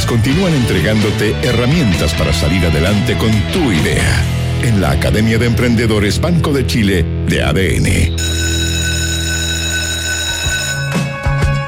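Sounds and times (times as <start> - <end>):
speech: 0.1 - 8.4
school bell ringing: 8.2 - 11.2.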